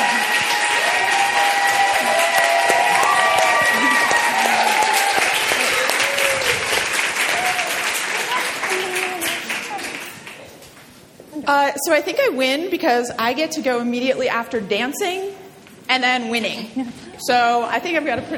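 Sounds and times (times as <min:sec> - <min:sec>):
audience applause welcoming a speaker on stage: 0:00.0 - 0:10.5
speech: 0:11.7 - 0:18.3.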